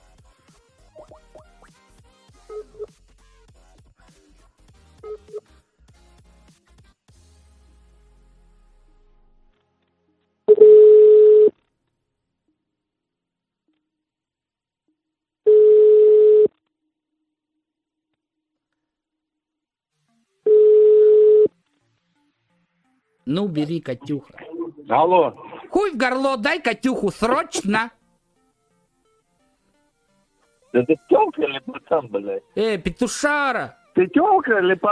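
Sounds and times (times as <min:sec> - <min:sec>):
telephone dialing beeps: 0:05.0 - 0:05.4, 0:10.5 - 0:11.5, 0:15.5 - 0:16.5, 0:20.5 - 0:21.5
telephone call ringback tone: 0:10.5 - 0:11.5, 0:15.5 - 0:16.5, 0:20.5 - 0:21.5
speech: 0:23.3 - 0:28.0, 0:30.7 - 0:34.8.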